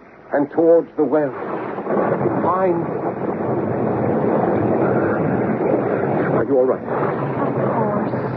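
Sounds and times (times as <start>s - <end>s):
speech: 0.3s - 3.6s, 6.5s - 8.3s
thunderstorm with wind and rain: 0.5s - 8.3s.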